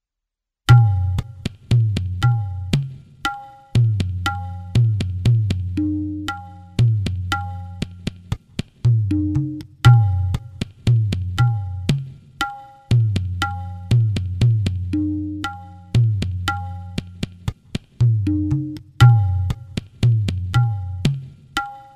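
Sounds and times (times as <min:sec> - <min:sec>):
tala rhythm: 0:00.7 - 0:21.9.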